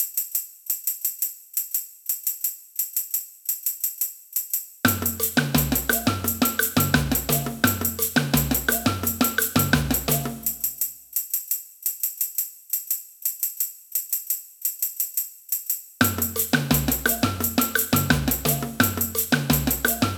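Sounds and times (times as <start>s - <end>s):
samba band playing: 4.9s - 10.7s, 16.0s - 20.1s.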